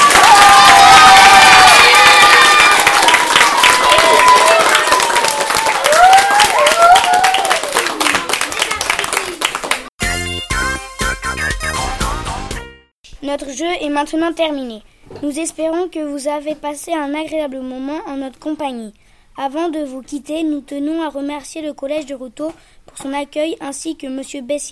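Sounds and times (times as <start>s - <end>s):
audience cheers and whoops: 0.0s - 8.2s
audience applauding warmly: 0.0s - 9.9s
speech: 14.0s - 24.7s.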